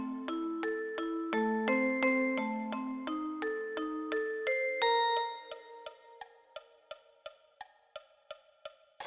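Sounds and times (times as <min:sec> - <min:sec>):
vibraphone: 0:00.0 - 0:06.3.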